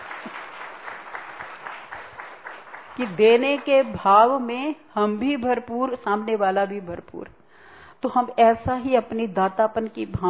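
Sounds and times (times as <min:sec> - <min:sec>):
audience clapping at a Hindi spiritual discourse: 0:00.0 - 0:04.1
speech: 0:03.0 - 0:07.4, 0:08.0 - 0:10.2.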